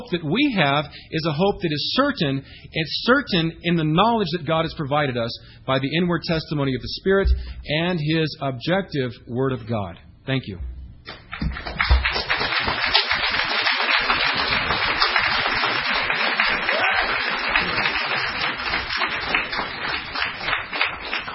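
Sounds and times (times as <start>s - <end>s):
speech: 0.0s - 11.8s
audience applause: 11.1s - 21.3s.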